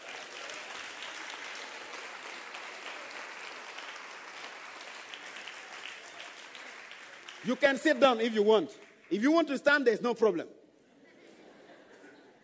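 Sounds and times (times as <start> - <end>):
audience clapping hands: 0.0 - 9.9
speech: 7.4 - 10.6
laughter: 10.8 - 12.4.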